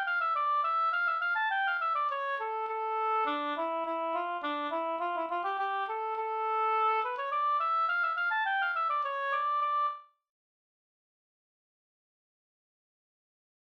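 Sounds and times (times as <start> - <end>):
polska folk dance tune: 0.0 - 10.0.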